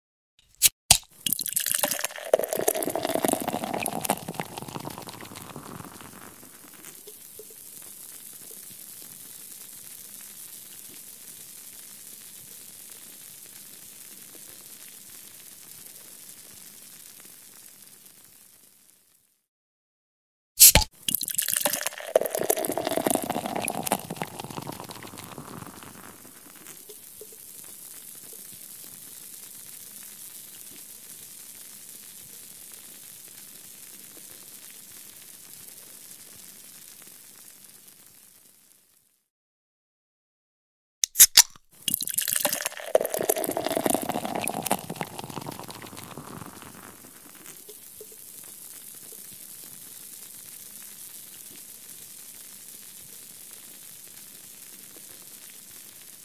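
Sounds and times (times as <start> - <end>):
beer can opening: 0.4 - 6.2, 20.6 - 20.9, 21.5 - 26.0, 41.0 - 46.9
beer pouring: 0.6 - 7.6, 20.6 - 27.4, 41.0 - 47.7.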